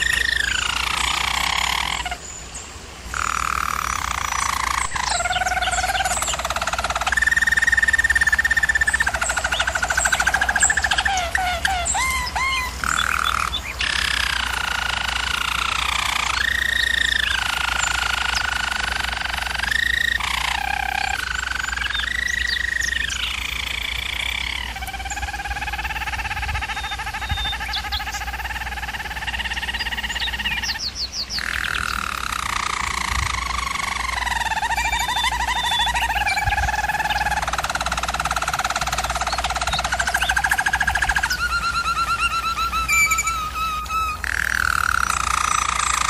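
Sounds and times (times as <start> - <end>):
German Roller canary rolling song: 0.0 - 46.0.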